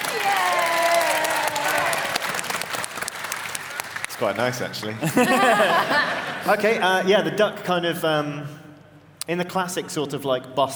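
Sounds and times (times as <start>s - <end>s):
small group clapping: 0.0s - 5.0s
speech: 4.2s - 8.6s, 9.3s - 10.7s
laughter: 5.0s - 7.0s.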